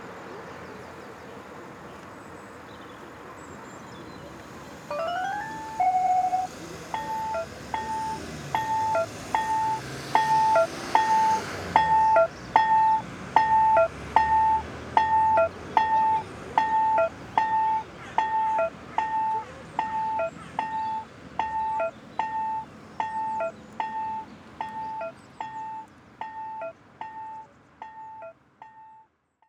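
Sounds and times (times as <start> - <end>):
traffic light signal: 4.9 - 29.1.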